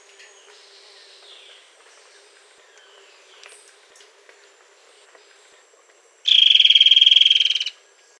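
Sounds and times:
bird buzzy trill: 0:06.3 - 0:07.8.

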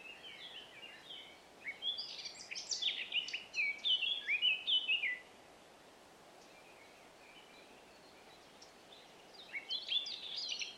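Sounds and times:
Eurasian blackcap song: 0:00.0 - 0:05.3, 0:06.4 - 0:10.7
quiet hiss: 0:00.0 - 0:10.7.

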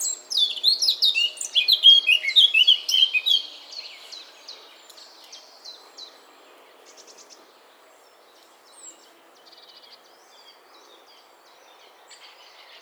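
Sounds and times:
Eurasian blackcap song: 0:00.0 - 0:05.8.

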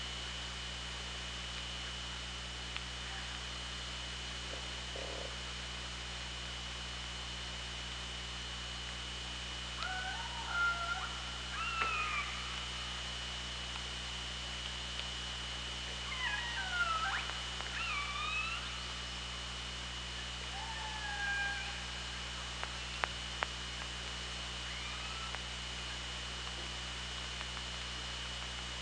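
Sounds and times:
steady underwater hiss and hum: 0:00.1 - 0:28.8
killer whale calls: 0:09.8 - 0:12.6, 0:16.0 - 0:18.8, 0:20.4 - 0:22.0.

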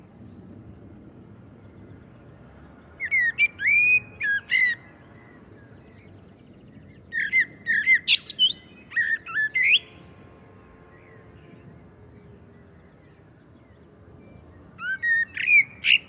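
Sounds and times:
Common blackbird Turdus merula whistling and twittering: 0:03.0 - 0:04.9, 0:07.0 - 0:09.9, 0:14.8 - 0:16.0.

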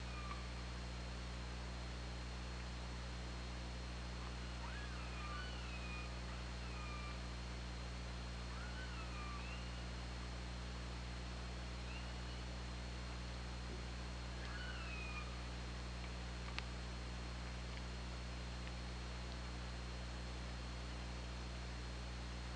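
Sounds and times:
constant low hum: 0:00.0 - 0:22.5
killer whale tonal calls: 0:04.2 - 0:07.3, 0:08.5 - 0:09.9, 0:14.4 - 0:15.4.

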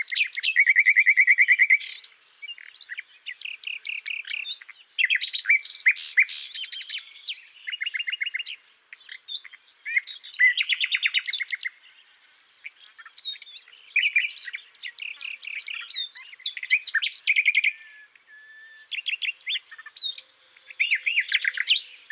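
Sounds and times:
common nightingale song: 0:00.0 - 0:22.1.

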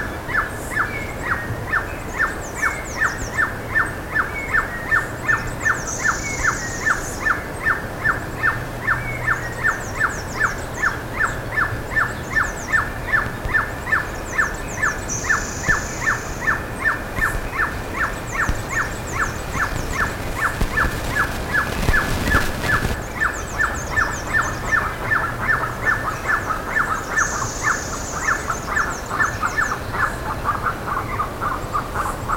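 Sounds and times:
bird calls: 0:00.0 - 0:32.3.

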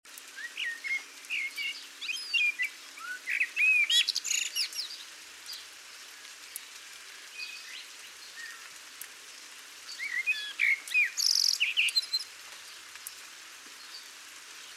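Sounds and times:
Eurasian blackbird fluty whistled song: 0:00.4 - 0:05.0, 0:07.4 - 0:08.7, 0:09.9 - 0:12.3
other chirping birds: 0:00.4 - 0:05.7, 0:09.9 - 0:12.7.

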